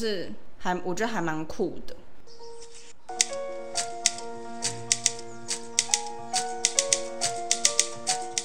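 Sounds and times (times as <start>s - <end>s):
speech: 0.0s - 2.5s
typewriter key clacks in a film score: 3.1s - 8.4s.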